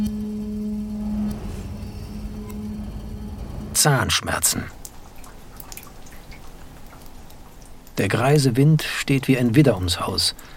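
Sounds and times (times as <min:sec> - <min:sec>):
steady low rumbling hiss: 0:00.0 - 0:10.5
speech: 0:03.8 - 0:04.8, 0:08.0 - 0:10.5
water dripping into rain barrels: 0:03.8 - 0:10.5.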